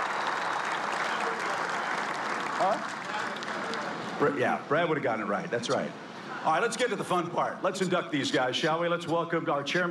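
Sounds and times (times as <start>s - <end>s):
big round of applause: 0.0s - 4.2s
speech: 2.6s - 3.0s, 4.2s - 9.9s.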